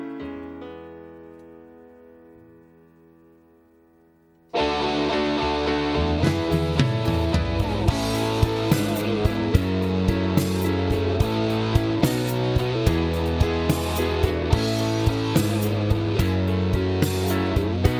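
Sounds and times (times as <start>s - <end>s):
backing track: 4.6s - 17.9s.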